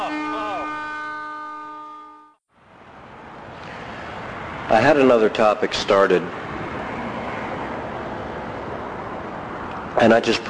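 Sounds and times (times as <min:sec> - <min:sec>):
passing train horn: 0:00.0 - 0:02.4
speech: 0:04.7 - 0:06.4, 0:10.0 - 0:10.4.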